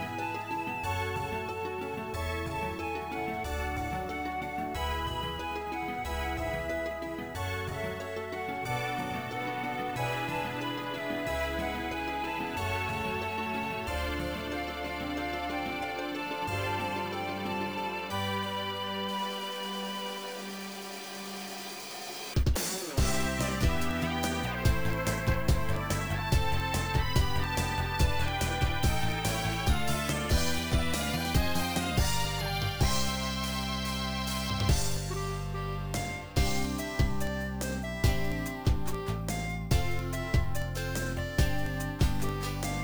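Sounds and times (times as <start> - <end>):
instrumental music ending: 0.2 - 42.8.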